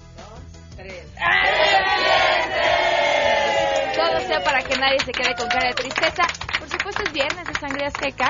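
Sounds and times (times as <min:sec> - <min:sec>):
speech: 0:00.8 - 0:01.4, 0:04.3 - 0:08.2
studio audience shouting together: 0:01.2 - 0:04.7.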